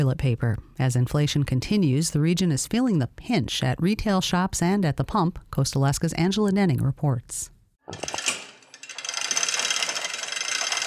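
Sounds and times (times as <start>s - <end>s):
speech: 0.0s - 8.2s
chain hoist being pulled: 7.9s - 10.8s.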